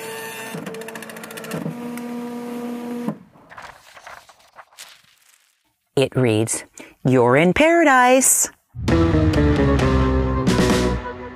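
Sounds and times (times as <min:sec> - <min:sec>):
printer noisily printing a sheet of paper: 0:00.0 - 0:04.1
speech: 0:00.6 - 0:00.8, 0:06.0 - 0:10.1
piece of paper falling to the ground: 0:03.5 - 0:05.7.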